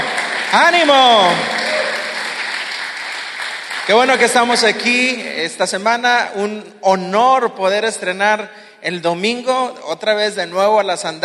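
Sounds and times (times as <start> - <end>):
audience applause: 0.0 - 4.8
speech: 0.5 - 1.5, 3.9 - 11.2.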